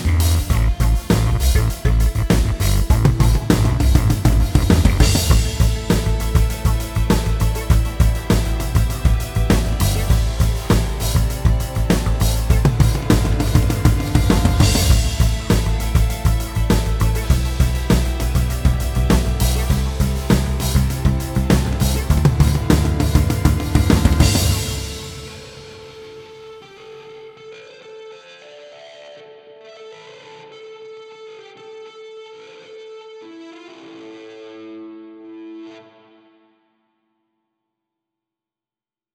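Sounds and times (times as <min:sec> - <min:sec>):
aggressive rock music: 0:00.0 - 0:27.0.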